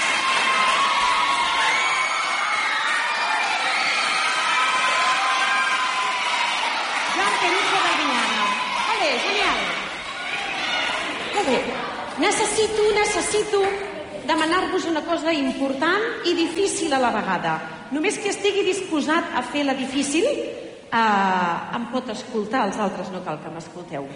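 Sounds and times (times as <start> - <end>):
school audience applauding: 0.0 - 11.9
speech: 11.4 - 24.1.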